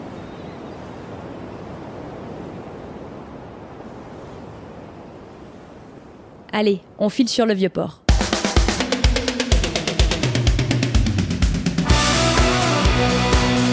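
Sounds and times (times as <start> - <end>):
sea breeze: 0.0 - 13.7
speech: 6.5 - 8.0.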